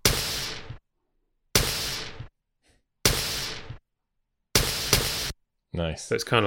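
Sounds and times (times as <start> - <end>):
distorted snare drum hits: 0.0 - 0.8, 1.6 - 2.3, 3.1 - 3.8, 4.6 - 5.3
speech: 5.8 - 6.4.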